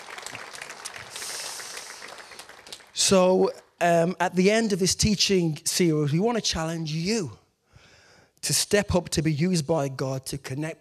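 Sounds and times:
audience applause in a reverberant hall: 0.0s - 3.1s
speech: 3.0s - 7.4s, 8.5s - 10.8s.

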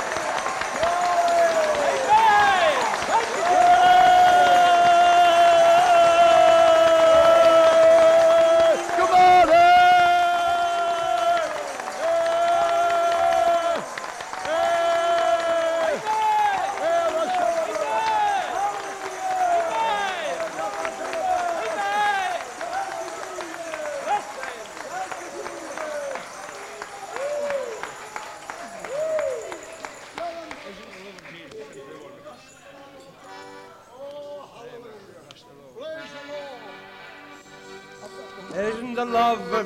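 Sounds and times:
crowd cheering and shouting: 0.0s - 30.6s
large audience clapping: 0.0s - 32.5s.

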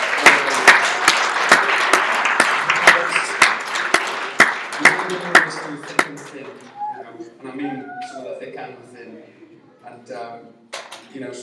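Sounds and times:
audience applause: 0.0s - 7.1s
speech: 5.1s - 11.4s.

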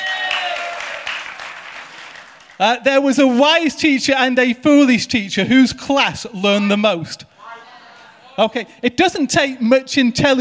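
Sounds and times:
audience clapping: 0.0s - 2.6s
speech: 2.6s - 7.3s, 8.4s - 10.3s.

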